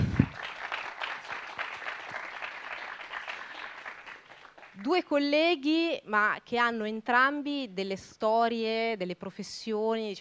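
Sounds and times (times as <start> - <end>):
audience applause: 0.0 - 4.8
speech: 4.9 - 10.1.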